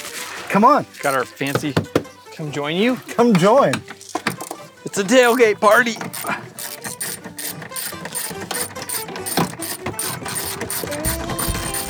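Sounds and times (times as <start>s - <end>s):
speech: 0.5s - 4.0s, 4.8s - 6.4s
metal clanks: 1.0s - 11.8s
ratchet wrenches removing car bolts: 3.0s - 11.8s.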